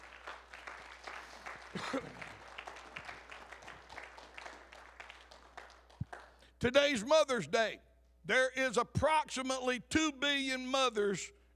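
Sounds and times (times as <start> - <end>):
audience applauding: 0.0 - 6.4
speech: 1.7 - 2.3, 6.6 - 11.4.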